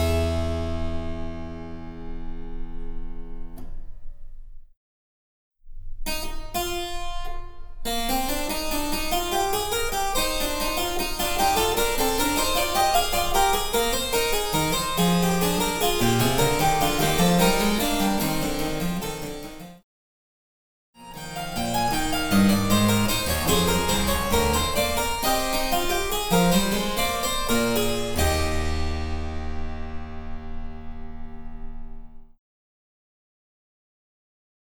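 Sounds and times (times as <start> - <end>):
harpsichord: 0.0 - 3.6, 8.2 - 19.8, 21.1 - 32.1.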